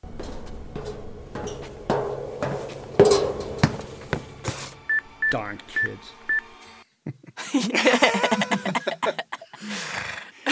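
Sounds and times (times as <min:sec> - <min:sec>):
footsteps on a boat deck: 0:00.0 - 0:04.8
speech: 0:05.3 - 0:06.2, 0:07.5 - 0:09.2
laughter: 0:07.0 - 0:10.5.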